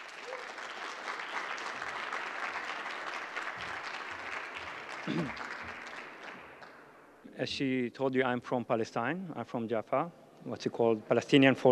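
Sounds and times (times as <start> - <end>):
audience applause welcoming a speaker: 0.0 - 6.8
speech: 5.0 - 5.5, 7.4 - 11.7.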